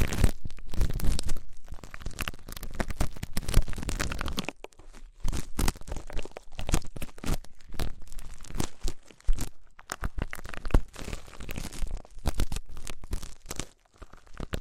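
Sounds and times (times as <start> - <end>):
deep ear treatment crinkling, crunching and rubbing: 0.0 - 14.5.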